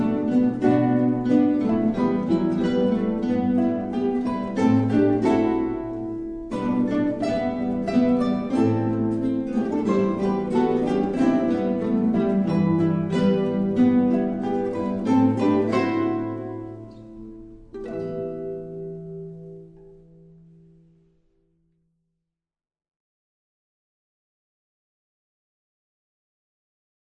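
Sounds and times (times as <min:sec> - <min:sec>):
guitar orchestra playing: 0:00.0 - 0:20.8.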